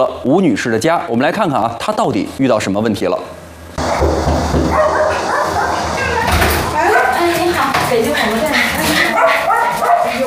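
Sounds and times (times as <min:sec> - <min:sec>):
speech: 0:00.0 - 0:03.4
many small rescued stray dogs barking and yipping at the door: 0:04.6 - 0:10.2.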